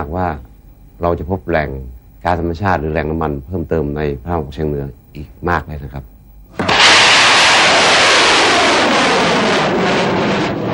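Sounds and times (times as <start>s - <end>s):
speech: 0.0s - 6.6s
large bung fai rockets launching at a rain-calling rocket festival: 6.5s - 10.7s.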